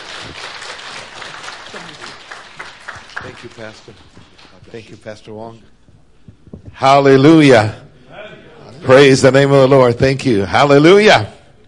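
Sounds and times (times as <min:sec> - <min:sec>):
church congregation applauding to welcome a visiting pastor: 0:00.0 - 0:05.0
speech: 0:03.2 - 0:05.8, 0:06.8 - 0:07.8, 0:08.8 - 0:11.4.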